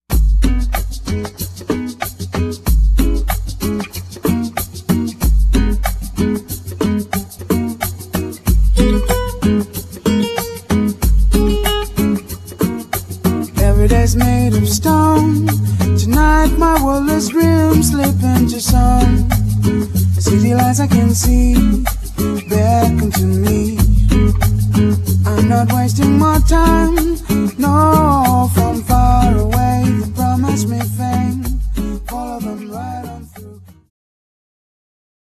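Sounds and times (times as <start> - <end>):
groove music: 0.1 - 33.9.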